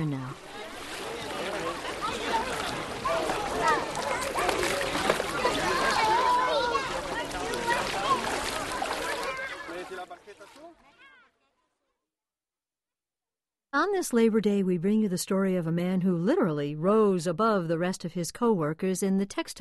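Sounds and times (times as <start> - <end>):
water splashing at Walden Pond: 0.0 - 11.0
child's voice: 5.9 - 8.2
speech: 13.9 - 19.6.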